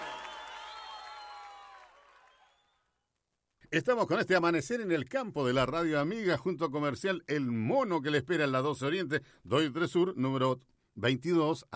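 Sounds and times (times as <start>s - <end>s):
audience applauding and cheering: 0.0s - 2.8s
speech: 3.7s - 11.7s.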